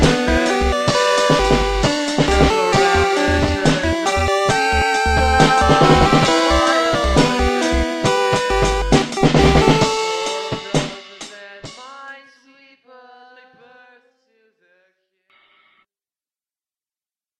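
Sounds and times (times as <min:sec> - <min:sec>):
acoustic drums: 0:00.0 - 0:12.0
LSDj vocal sounds: 0:01.0 - 0:11.0.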